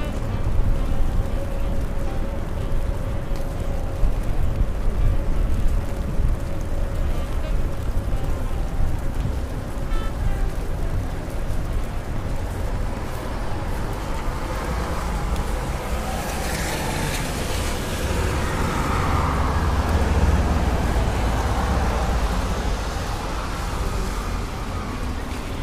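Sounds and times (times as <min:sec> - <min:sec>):
rainy New York street traffic rumble: 0:00.0 - 0:25.6
vehicle passing: 0:10.5 - 0:25.6.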